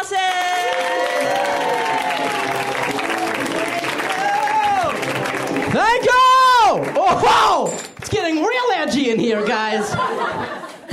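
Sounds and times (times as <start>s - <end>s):
audience applause: 0.2s - 8.5s
laughter: 9.0s - 10.9s.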